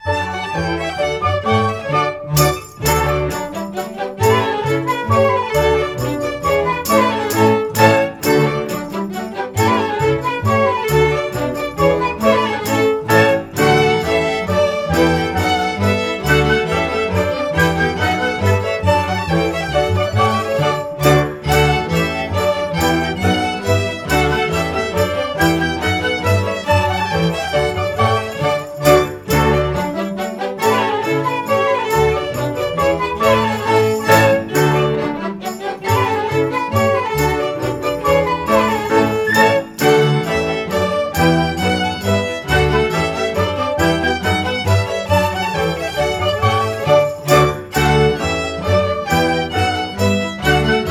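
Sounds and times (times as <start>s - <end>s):
polka music: 0.0s - 50.8s.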